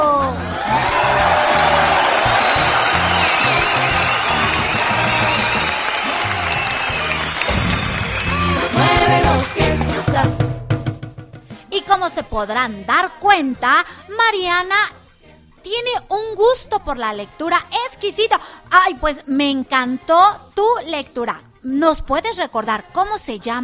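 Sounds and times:
audience applause: 0.1 - 10.3
speech: 12.3 - 15.0, 15.7 - 23.6.

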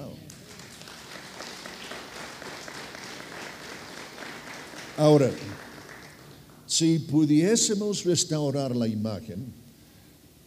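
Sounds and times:
audience applause: 0.3 - 6.7
speech: 5.0 - 5.6, 6.8 - 9.6.

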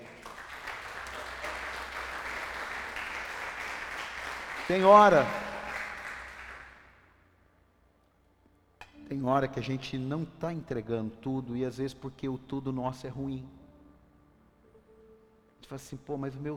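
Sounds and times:
audience applause: 0.0 - 6.9
speech: 4.7 - 5.4, 9.2 - 13.6, 15.7 - 16.5.

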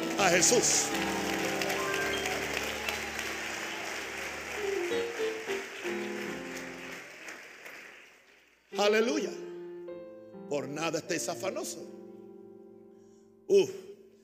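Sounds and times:
crowd clapping steadily: 0.0 - 8.8
speech: 0.2 - 1.4, 8.9 - 9.4, 10.6 - 12.0, 13.5 - 13.8.

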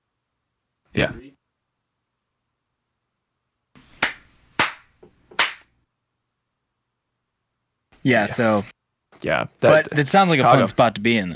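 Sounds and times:
speech: 0.9 - 1.2, 8.0 - 11.3
hand claps to sync recording: 3.8 - 5.7.

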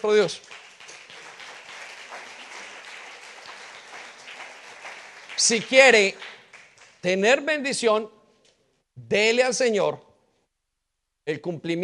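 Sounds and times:
speech: 0.0 - 0.6, 5.4 - 6.3, 7.0 - 8.2, 9.0 - 10.1, 11.2 - 11.8
audience applauding: 0.0 - 7.1.

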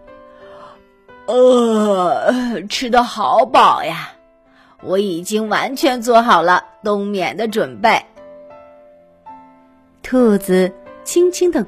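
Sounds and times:
person yawning: 1.3 - 2.5
speech: 1.3 - 4.2, 4.8 - 8.1, 10.1 - 11.6.

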